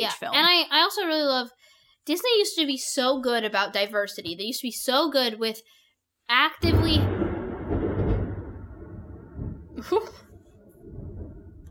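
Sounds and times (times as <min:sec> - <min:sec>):
speech: 0:00.0 - 0:07.3, 0:09.8 - 0:10.2
thunder: 0:06.6 - 0:11.6.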